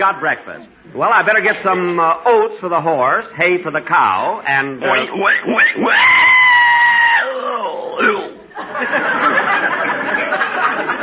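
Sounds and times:
speech: 0.0 - 6.4
pig squealing: 4.9 - 8.4
laughter: 8.5 - 11.0.

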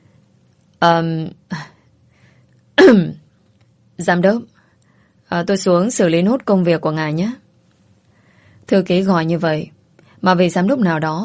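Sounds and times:
speech: 0.8 - 1.7, 2.8 - 3.2, 4.0 - 4.5, 5.3 - 7.4, 8.7 - 11.2
secretary performing a light fake cough: 2.8 - 3.1.

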